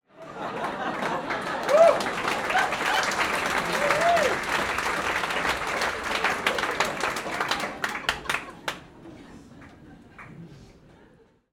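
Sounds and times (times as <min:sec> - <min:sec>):
comedy club audience laughing: 0:00.1 - 0:04.0, 0:06.2 - 0:11.5
light applause in a comedy club: 0:00.2 - 0:11.0.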